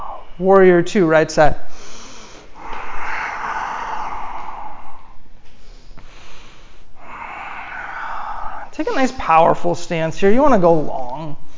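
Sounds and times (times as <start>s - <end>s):
deep breathing in and out during a yoga class: 0.0s - 0.4s, 1.6s - 9.6s, 11.4s - 11.5s
speech: 0.4s - 1.8s, 9.0s - 11.4s.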